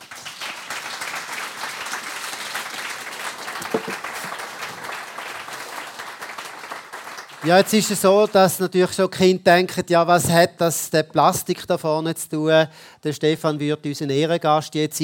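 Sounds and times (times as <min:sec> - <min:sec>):
audience applause: 0:00.0 - 0:08.0
speech: 0:03.8 - 0:04.0, 0:07.4 - 0:15.0.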